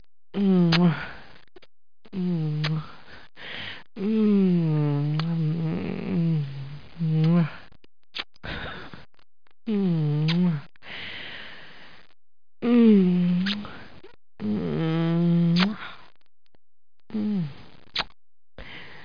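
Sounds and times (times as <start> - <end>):
kiss: 0.4 - 1.0, 1.6 - 2.9, 4.2 - 6.3, 7.0 - 7.5, 8.1 - 8.6, 9.7 - 10.7, 12.6 - 16.0, 17.1 - 18.2.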